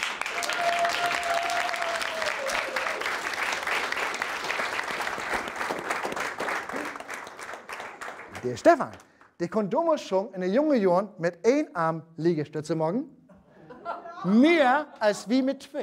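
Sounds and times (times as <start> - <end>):
audience applause: 0.0 - 9.0
speech: 8.4 - 13.2, 14.2 - 15.8
laughter: 13.3 - 15.4.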